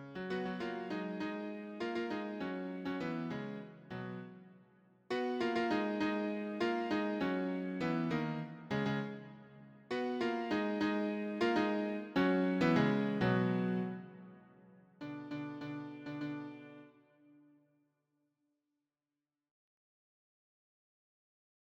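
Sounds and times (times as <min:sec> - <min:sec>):
piano piece: 0:00.0 - 0:04.4, 0:05.1 - 0:16.9.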